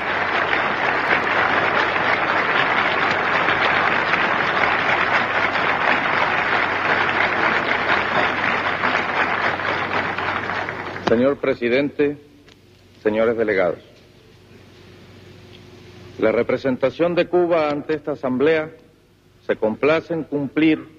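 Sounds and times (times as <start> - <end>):
large crowd applause after a speech: 0.0 - 11.4
speech: 11.1 - 12.3, 13.0 - 13.9, 16.2 - 18.8, 19.5 - 20.9.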